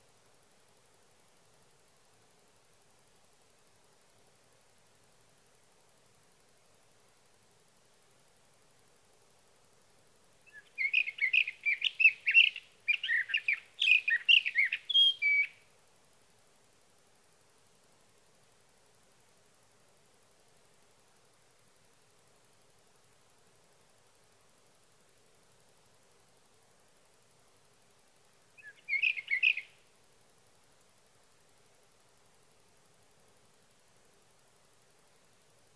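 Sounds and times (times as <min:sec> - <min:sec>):
Sage thrasher singing at night: 0:10.5 - 0:15.6, 0:28.6 - 0:29.7.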